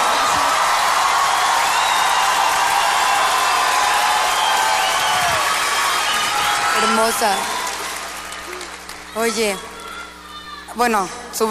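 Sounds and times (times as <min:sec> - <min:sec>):
audience applause: 0:00.0 - 0:09.2
speech: 0:07.0 - 0:07.5, 0:09.2 - 0:09.7, 0:10.8 - 0:11.4.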